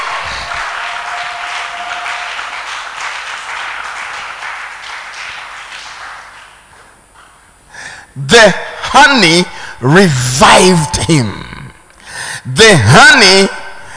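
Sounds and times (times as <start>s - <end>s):
audience clapping and cheering: 0.0s - 7.2s
speech: 8.2s - 11.4s, 12.4s - 13.6s.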